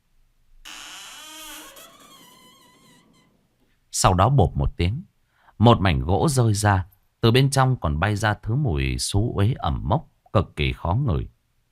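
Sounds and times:
old wooden door creaking open: 0.6s - 3.6s
speech: 4.0s - 11.4s.

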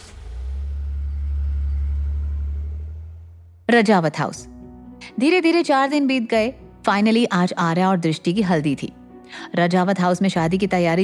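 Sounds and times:
car driving away: 0.0s - 3.7s
speech: 3.7s - 4.6s, 5.2s - 11.0s.

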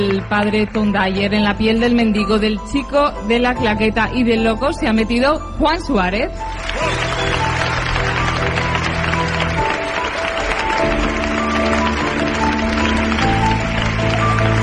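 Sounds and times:
speech: 0.0s - 7.4s
audience applause: 6.4s - 14.6s.

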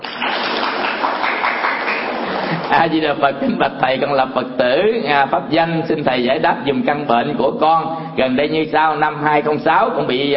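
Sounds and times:
audience applause at a Buddhist monk's lecture: 0.0s - 3.0s
laughter: 1.9s - 3.8s
speech: 2.8s - 10.3s.

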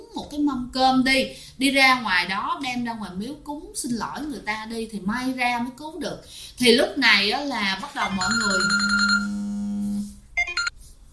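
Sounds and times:
speech: 0.3s - 9.3s
phone ringing: 8.0s - 10.7s.

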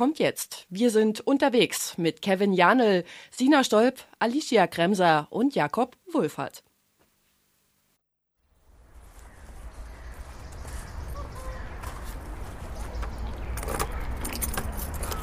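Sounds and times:
speech: 0.0s - 6.7s
clothing rustling: 6.8s - 8.0s
keys jangling: 14.2s - 15.2s.

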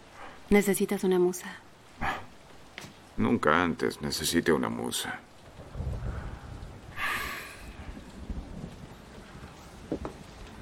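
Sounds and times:
steady rain falling outside: 0.0s - 10.6s
speech: 0.5s - 2.2s, 3.2s - 5.9s
low rumbling: 5.4s - 10.6s.

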